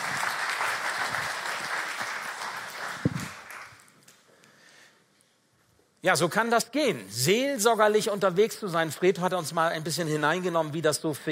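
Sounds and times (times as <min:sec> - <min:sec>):
audience applause: 0:00.0 - 0:04.0
speech: 0:06.0 - 0:11.3.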